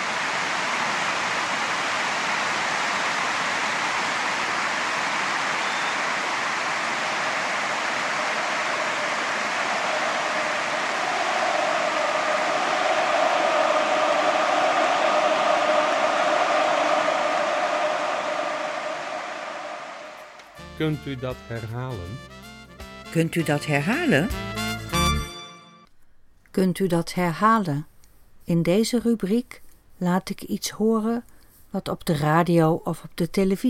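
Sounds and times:
stadium crowd applauding and roaring after a goal: 0.0 - 22.2
speech: 20.8 - 22.5, 23.1 - 24.6, 26.6 - 27.9, 28.5 - 33.6.

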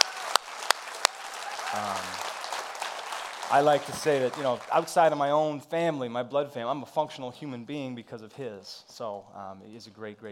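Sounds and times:
sharp claps: 0.0 - 5.2
audience applauding: 0.0 - 5.4
speech: 3.5 - 10.2.

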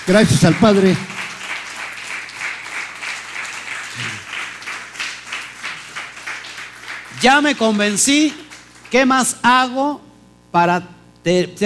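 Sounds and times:
audience applause: 0.0 - 9.0
speech: 0.1 - 1.1, 7.2 - 11.6.

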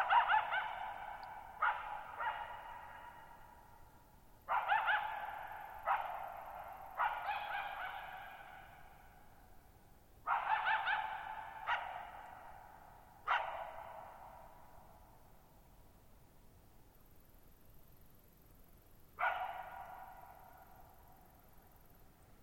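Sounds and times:
coyote barking and yipping: 0.0 - 3.6, 4.5 - 8.8, 10.3 - 14.4, 19.2 - 20.4.

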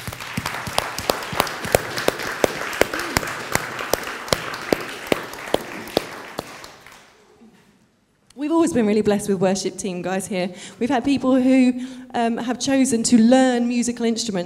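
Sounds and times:
audience applause: 0.0 - 7.2
speech: 8.6 - 14.4.

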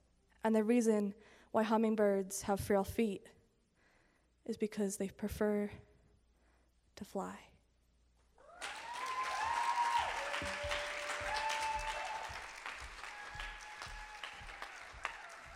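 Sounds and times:
speech: 0.4 - 3.4, 4.4 - 5.9, 7.0 - 7.5
audience applause: 8.4 - 15.5
whistles and cheers: 8.4 - 15.5.

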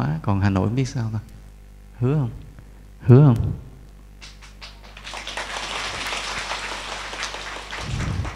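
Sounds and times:
speech: 0.0 - 1.4, 2.0 - 2.4, 3.0 - 3.6
low steady hum: 0.0 - 8.3
temple audience applauding: 4.2 - 8.3.

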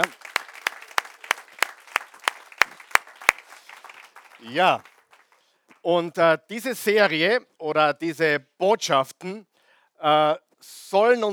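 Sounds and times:
enthusiastic applause: 0.0 - 5.8
speech: 4.5 - 4.9, 5.8 - 11.3.

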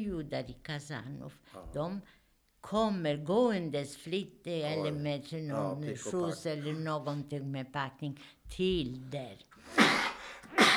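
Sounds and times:
speech: 0.0 - 10.7
sneeze: 9.7 - 10.7.

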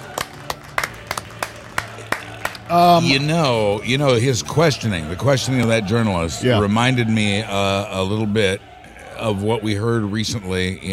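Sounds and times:
crowd applause: 0.0 - 6.0
speech: 2.7 - 10.9.

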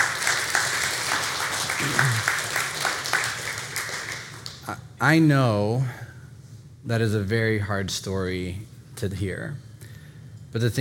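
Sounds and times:
audience applause: 0.0 - 4.7
speech: 1.8 - 2.4, 5.0 - 6.0, 6.8 - 9.7, 10.5 - 10.8.

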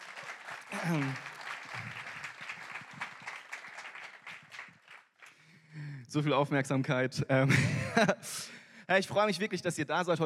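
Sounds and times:
crowd applauding: 0.0 - 5.6
speech: 0.7 - 1.3, 6.1 - 10.2
laughter: 7.5 - 8.5.

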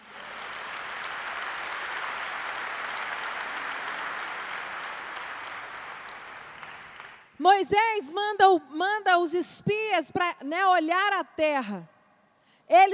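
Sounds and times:
audience applause: 0.0 - 7.3
speech: 7.4 - 11.9, 12.7 - 12.9.

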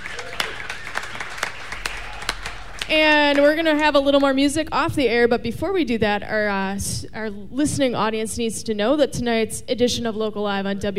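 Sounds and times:
studio audience applause: 0.0 - 3.6
speech: 2.9 - 10.9.

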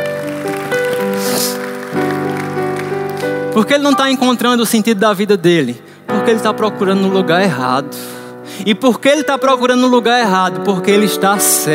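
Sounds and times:
audience applause: 0.0 - 3.6
speech: 3.6 - 11.7.

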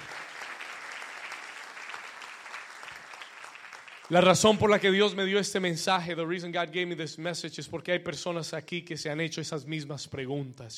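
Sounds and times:
loud audience applause: 0.0 - 4.9
speech: 4.1 - 10.7.

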